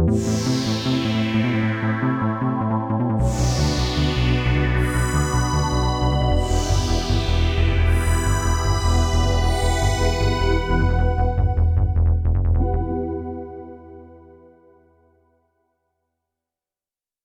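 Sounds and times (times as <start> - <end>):
downward sweeping synth pad on a Korg Radias-R: 0.2 - 13.1.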